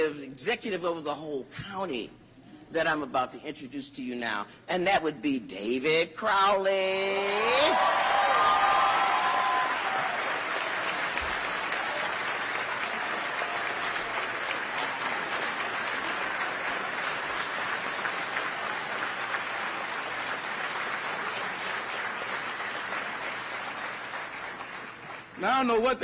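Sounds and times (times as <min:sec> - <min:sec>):
speech: 0:00.0 - 0:08.6, 0:25.6 - 0:26.0
audience applause: 0:07.2 - 0:26.0.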